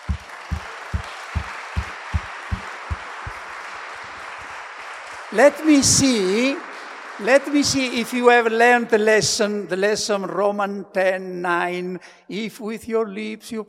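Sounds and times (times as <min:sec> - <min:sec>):
audience clapping hands together in rhythm: 0:00.0 - 0:07.8
speech: 0:05.3 - 0:13.6.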